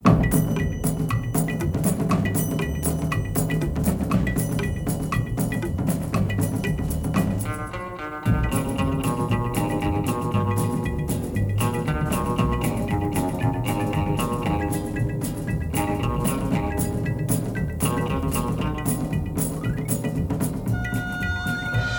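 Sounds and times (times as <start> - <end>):
drums of India: 0.0 - 21.9
orchestra: 20.6 - 21.9.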